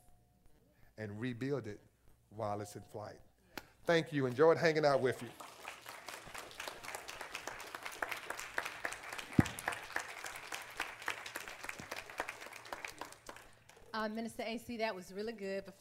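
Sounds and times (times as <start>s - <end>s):
speech: 1.0s - 3.3s, 3.9s - 5.5s, 14.0s - 15.7s
audience applause: 5.0s - 13.9s.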